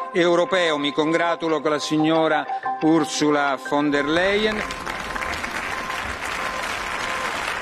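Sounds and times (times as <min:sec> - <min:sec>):
speech: 0:00.1 - 0:04.9
loud applause in European Parliament: 0:04.0 - 0:07.6.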